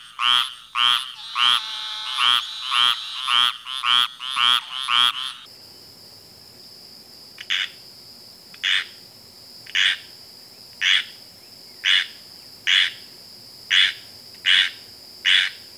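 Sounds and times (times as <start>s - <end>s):
squirrel treefrog calls: 0.0s - 5.5s, 7.4s - 7.8s, 8.6s - 9.0s, 9.7s - 10.1s, 10.8s - 11.2s, 11.8s - 13.1s, 13.7s - 15.7s.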